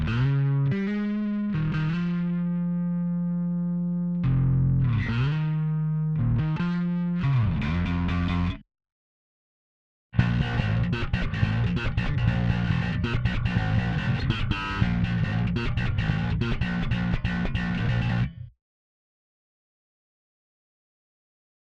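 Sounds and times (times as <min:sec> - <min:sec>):
bass stem: 0:00.0 - 0:08.6, 0:10.2 - 0:18.6.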